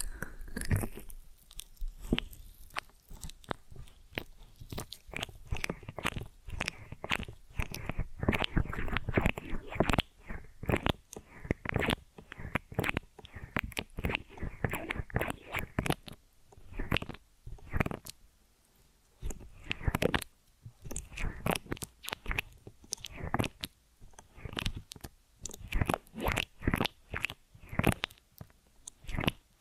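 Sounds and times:
ear and scalp massage rubbing and scratching strokes: 0.0 - 18.2, 19.2 - 29.5.

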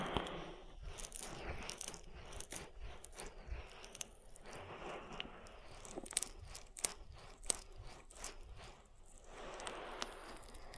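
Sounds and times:
oil ear massage wet rubbing and squishing: 0.0 - 10.7
sharp clicks and crackles: 0.0 - 10.7.

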